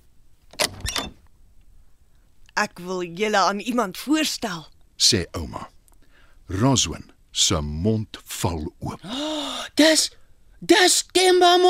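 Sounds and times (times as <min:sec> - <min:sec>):
door opening: 0:00.5 - 0:01.3
speech: 0:02.6 - 0:05.8, 0:06.5 - 0:11.6.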